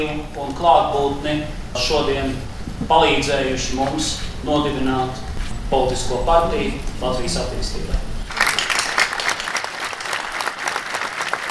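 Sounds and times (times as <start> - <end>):
speech: 0.0 - 8.1
large crowd applauding: 8.3 - 11.4.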